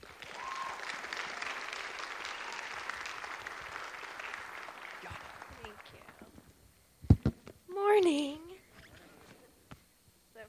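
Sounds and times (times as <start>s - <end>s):
audience applause: 0.0s - 6.4s
speech: 7.9s - 8.4s.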